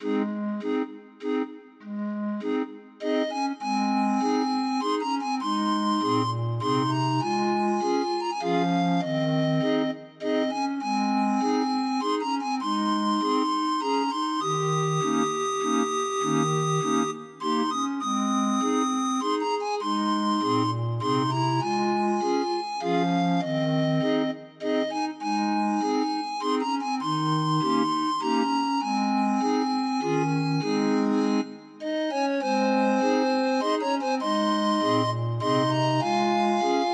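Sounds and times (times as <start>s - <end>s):
hymn on a 31 note MIDI grind organ: 0.0s - 36.9s.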